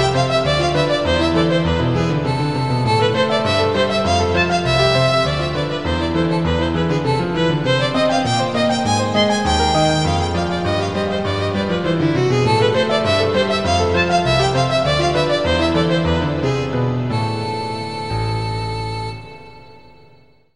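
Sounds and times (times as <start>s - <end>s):
violin: 0.0s - 20.1s
piano: 0.0s - 20.5s.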